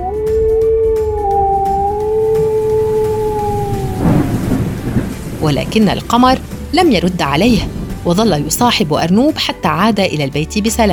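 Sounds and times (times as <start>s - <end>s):
wolf howling in a storm: 0.0s - 5.1s
rumbling thunder: 0.4s - 9.2s
heavy rain: 2.0s - 10.9s
speech: 5.5s - 10.9s.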